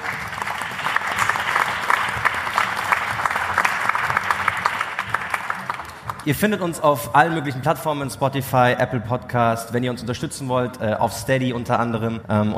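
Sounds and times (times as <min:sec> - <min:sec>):
audience applause: 0:00.0 - 0:06.3
speech: 0:06.3 - 0:12.5.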